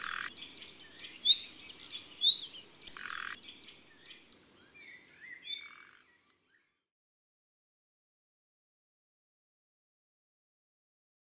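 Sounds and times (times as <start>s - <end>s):
common nightingale singing: 0.0s - 6.6s.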